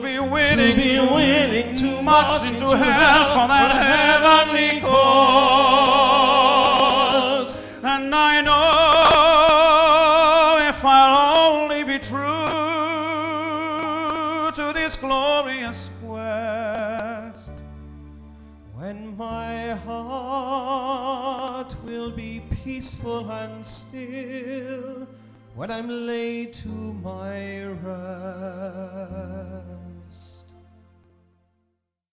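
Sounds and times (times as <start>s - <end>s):
waiters singing in London: 0.3s - 15.4s.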